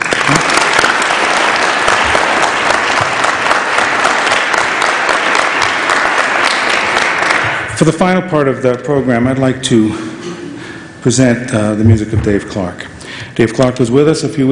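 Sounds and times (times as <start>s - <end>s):
audience applause for handbell choir: 0.0s - 7.7s
speech: 7.8s - 10.1s, 11.0s - 14.5s.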